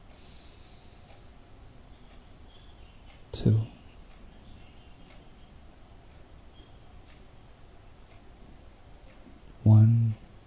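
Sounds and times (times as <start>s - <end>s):
deep breath in during a guided breathing meditation: 0.1s - 1.3s
speech: 3.3s - 3.8s.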